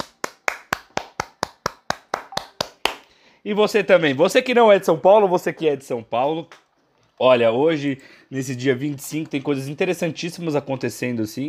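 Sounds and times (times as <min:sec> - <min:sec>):
person clapping in applause for São Paulo's anniversary: 0:00.0 - 0:03.1
speech: 0:03.4 - 0:06.6, 0:07.2 - 0:11.4.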